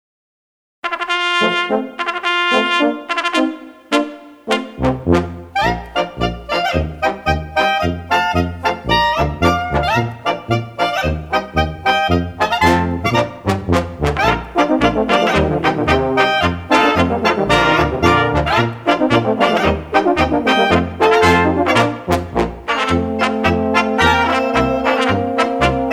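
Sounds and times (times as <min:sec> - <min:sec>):
schottische dance tune: 0:00.8 - 0:25.9.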